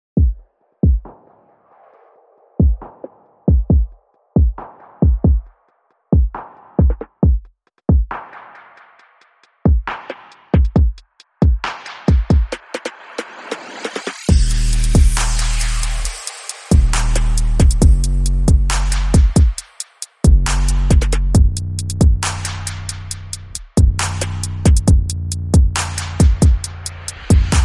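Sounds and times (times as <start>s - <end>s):
drums: 0.2s - 27.6s
bass: 14.3s - 19.6s, 20.2s - 27.6s.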